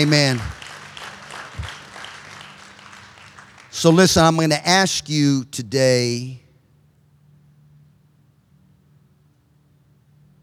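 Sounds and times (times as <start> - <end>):
speech: 0.0 - 0.6, 3.8 - 6.4
audience clapping: 0.0 - 4.9.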